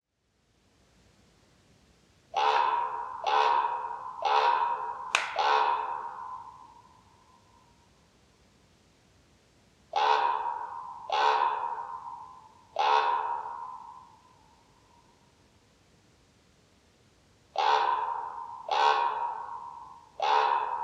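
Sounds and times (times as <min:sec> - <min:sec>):
common raven croaking: 0:02.4 - 0:07.1, 0:09.9 - 0:14.7, 0:17.6 - 0:20.8.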